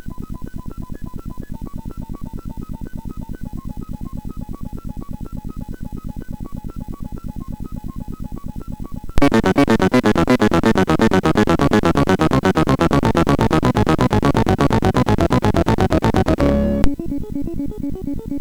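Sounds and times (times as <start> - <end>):
classical music on a MOS6581 sound chip: 9.2 - 17.7.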